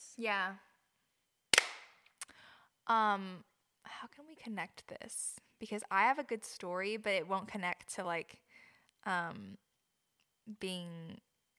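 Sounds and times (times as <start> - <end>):
speech: 0.2 - 0.7, 2.9 - 8.4, 9.0 - 9.7, 10.5 - 11.3
hand clap for audio sync: 1.5 - 2.0.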